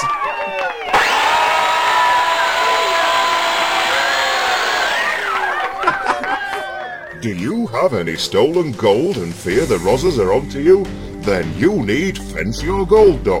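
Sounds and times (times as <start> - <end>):
blender motor whining: 0.9 - 5.8
laughter: 4.3 - 7.2
speech: 7.2 - 13.3.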